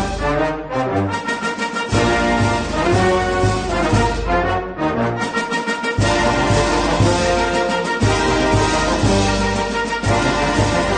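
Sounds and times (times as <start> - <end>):
warm instrumental piece with sustained chords and bass line: 0.0 - 10.9.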